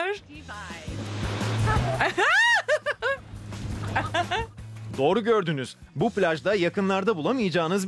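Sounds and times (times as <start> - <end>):
speech: 0.1 - 1.0, 5.0 - 7.8
waves made by turbines in a wave pool: 1.0 - 2.6
laughter: 1.6 - 4.6.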